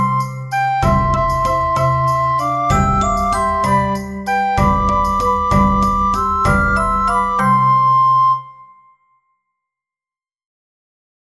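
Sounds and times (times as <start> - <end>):
instrumental ensemble: 0.0 - 8.6.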